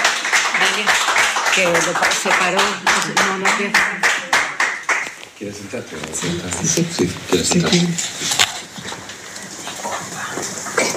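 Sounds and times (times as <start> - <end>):
audience applause: 0.0 - 8.4
speech: 0.8 - 1.0, 1.6 - 4.3, 5.4 - 8.4.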